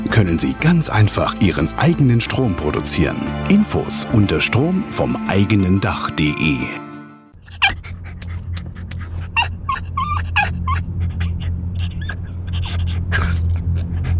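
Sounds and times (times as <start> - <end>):
speech: 0.0 - 6.8
dog suffering heatstroke in a car: 7.4 - 14.1.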